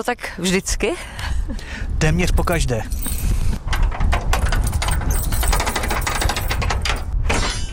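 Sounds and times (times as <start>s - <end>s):
speech: 0.0s - 3.4s
chapel door opening: 3.0s - 7.7s.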